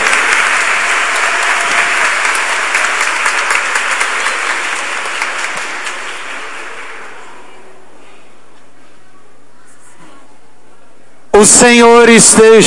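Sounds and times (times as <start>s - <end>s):
audience applause: 0.0s - 7.7s
speech: 11.4s - 12.6s.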